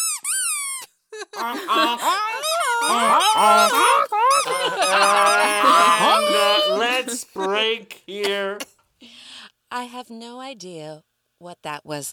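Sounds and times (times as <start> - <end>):
laughter: 1.2 - 8.6
speech: 1.4 - 2.2, 9.8 - 12.1
voice imitating goose honks: 1.6 - 8.7.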